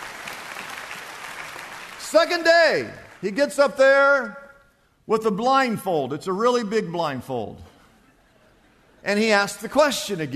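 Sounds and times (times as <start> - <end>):
audience applause: 0.0 - 3.2
speech: 2.1 - 4.4, 5.1 - 7.7, 9.0 - 10.3.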